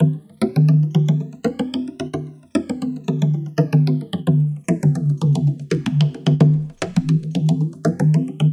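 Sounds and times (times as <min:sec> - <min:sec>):
congas: 0:00.0 - 0:08.5.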